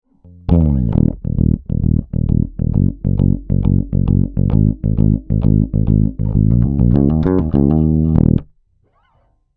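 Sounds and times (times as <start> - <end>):
bassline: 0.2 - 8.5.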